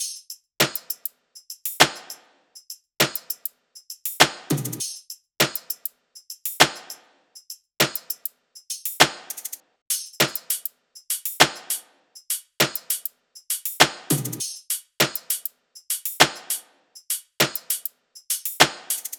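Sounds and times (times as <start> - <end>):
music loop: 4.0 - 5.0, 8.8 - 19.1.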